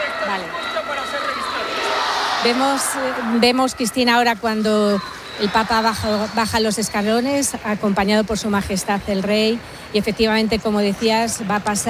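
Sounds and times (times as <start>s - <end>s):
crowd shouting: 0.0s - 7.1s
speech: 2.4s - 11.8s.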